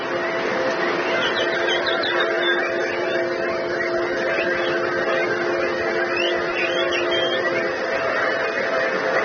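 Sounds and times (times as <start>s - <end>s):
crowd of people whistling and chirping in imitation of birdsong: 0.0s - 9.2s
steady low hum: 0.0s - 9.2s.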